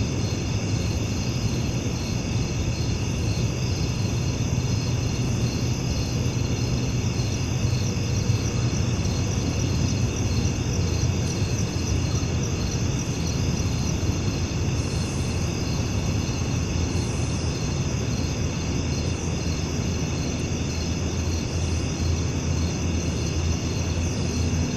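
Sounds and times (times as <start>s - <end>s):
cricket chorus trilling at night: 0.0s - 24.7s.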